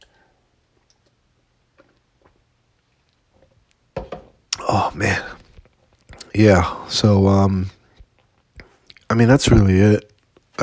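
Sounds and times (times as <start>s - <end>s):
knock: 4.0s - 4.3s
person sipping water: 4.5s - 6.3s
speech: 4.8s - 5.3s, 6.4s - 7.8s, 9.2s - 10.6s.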